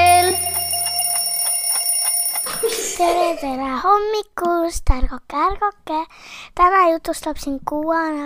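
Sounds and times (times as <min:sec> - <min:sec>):
alarm clock ringing: 0:00.1 - 0:03.1
laughter: 0:02.5 - 0:03.5
speech: 0:03.4 - 0:08.2.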